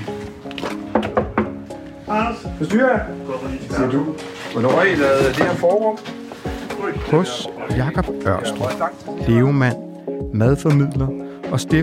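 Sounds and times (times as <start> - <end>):
knocking on a kitchen door: 0.9 - 1.6
speech: 2.1 - 6.2, 6.8 - 11.8.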